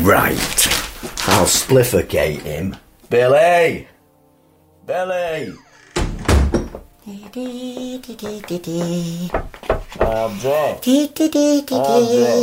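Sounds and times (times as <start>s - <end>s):
speech: 0.0s - 3.9s, 4.9s - 5.6s, 7.1s - 12.4s
door closing: 5.5s - 7.0s.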